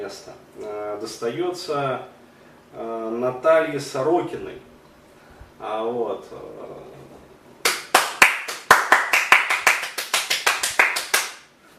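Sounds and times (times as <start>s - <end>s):
speech: 0.0s - 4.7s, 5.6s - 7.0s
hands clapping: 7.6s - 11.5s.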